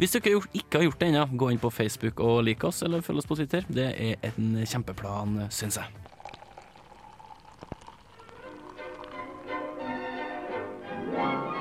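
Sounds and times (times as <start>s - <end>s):
speech: 0.0s - 6.1s
beer pouring into a glass: 5.1s - 10.6s.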